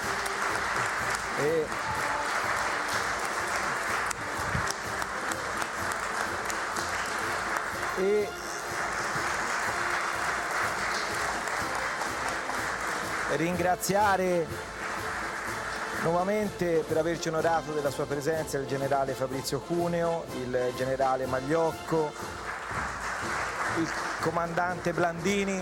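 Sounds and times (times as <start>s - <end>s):
audience applause: 0.0s - 13.9s, 14.6s - 16.4s, 22.4s - 25.6s
speech: 1.4s - 2.0s, 13.4s - 14.7s, 16.0s - 22.3s, 23.8s - 25.6s.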